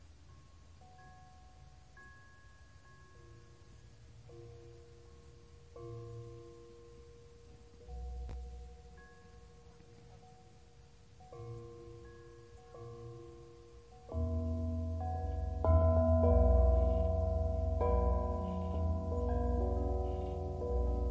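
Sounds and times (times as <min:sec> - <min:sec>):
ringing bells playing slow sustained notes: 0:00.0 - 0:21.0
soft hiss of white noise: 0:00.0 - 0:21.0
heavier low rumble: 0:14.3 - 0:21.0.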